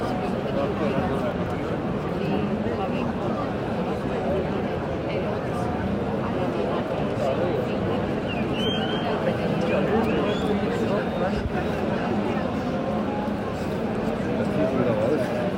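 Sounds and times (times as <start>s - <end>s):
bullfight crowd murmur in Seville's Real Maestranza: 0.0s - 15.5s
whistle: 8.3s - 9.2s, 10.0s - 11.3s.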